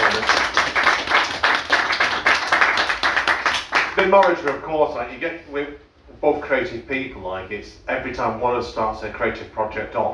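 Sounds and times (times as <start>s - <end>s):
audience applause: 0.0s - 4.0s
speech: 4.0s - 10.1s.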